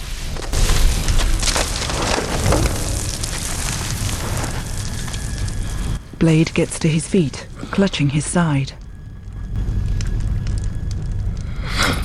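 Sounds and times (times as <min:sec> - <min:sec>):
roaring, crackling fire consuming a character's body: 0:00.0 - 0:12.0
deep boom: 0:00.6 - 0:06.8
speech: 0:06.2 - 0:08.8.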